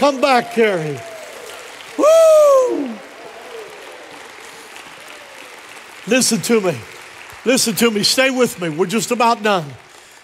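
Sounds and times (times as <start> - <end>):
speech: 0.0 - 1.1, 6.1 - 10.2
audience applause: 0.0 - 10.2.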